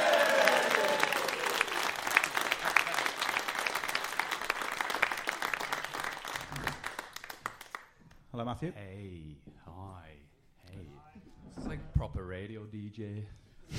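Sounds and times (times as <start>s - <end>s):
audience cheering: 0.0s - 6.2s
audience applause: 0.0s - 7.9s
speech: 8.5s - 10.1s, 12.0s - 13.7s.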